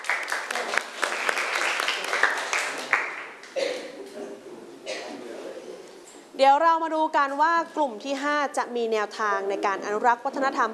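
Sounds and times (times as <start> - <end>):
students applauding: 0.0 - 3.4
speech: 6.4 - 10.7.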